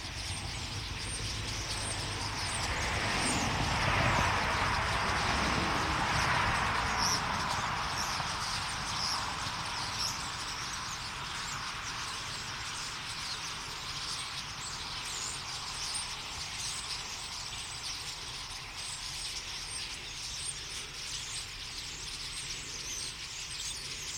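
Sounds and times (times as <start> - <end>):
common starling flock singing: 0.0 - 24.1
traffic rumbling: 0.0 - 24.1.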